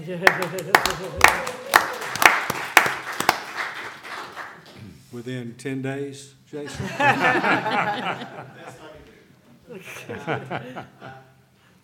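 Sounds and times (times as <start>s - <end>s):
speech: 0.0s - 2.0s, 5.1s - 9.0s, 9.7s - 11.1s
laughter: 0.0s - 2.2s, 6.7s - 11.4s
clapping: 0.2s - 4.8s.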